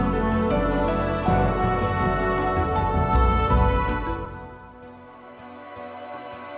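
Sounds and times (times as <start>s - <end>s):
music loop: 0.0s - 4.7s.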